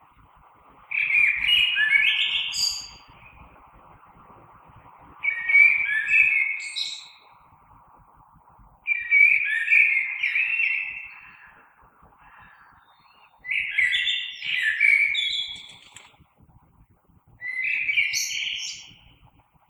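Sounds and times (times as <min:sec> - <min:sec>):
common blackbird singing: 0:00.9 - 0:03.4, 0:05.2 - 0:07.3, 0:08.8 - 0:16.0, 0:17.4 - 0:19.0.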